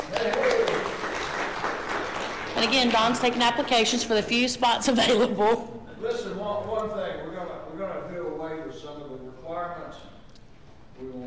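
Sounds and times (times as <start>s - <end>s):
round of applause: 0.0s - 3.8s
speech: 2.6s - 7.6s.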